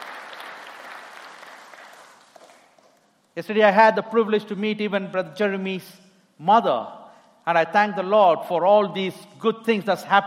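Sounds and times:
audience clapping: 0.0s - 3.1s
speech: 3.4s - 10.2s.

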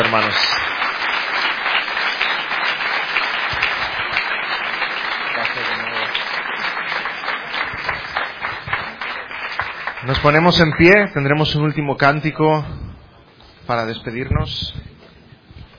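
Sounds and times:
speech: 0.0s - 0.8s, 10.0s - 12.8s, 13.7s - 14.9s
audience applause: 0.0s - 11.1s.

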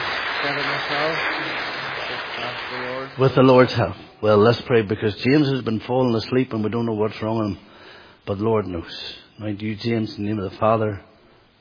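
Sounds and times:
applause: 0.0s - 3.6s
speech: 0.4s - 1.8s, 2.4s - 11.1s.

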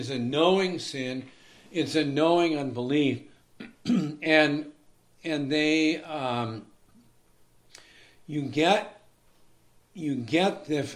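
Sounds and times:
speech: 0.0s - 6.7s, 8.3s - 9.0s, 10.0s - 10.9s
person clearing throat after eating cereal: 3.6s - 4.3s.

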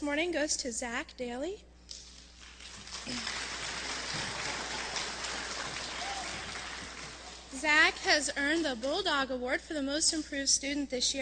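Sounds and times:
speech: 0.0s - 2.0s, 3.0s - 3.5s, 4.1s - 4.4s, 7.5s - 11.1s
audience applauding for award recipient: 2.4s - 8.2s.

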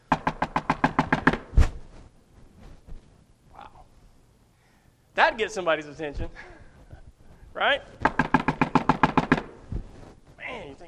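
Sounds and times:
loud knocking on a door: 0.1s - 1.5s, 8.0s - 9.6s
speech: 5.3s - 6.6s, 7.6s - 8.1s.

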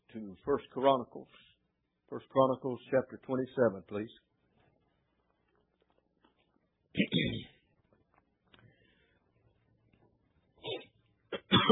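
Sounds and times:
speech: 0.2s - 1.5s, 2.1s - 4.3s
person coughing from a tickle in the throat: 7.0s - 7.6s, 10.6s - 11.7s.

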